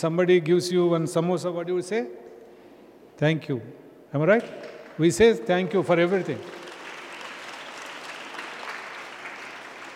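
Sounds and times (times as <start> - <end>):
speech: 0.0 - 2.3, 3.2 - 6.6
group clapping: 4.4 - 9.9.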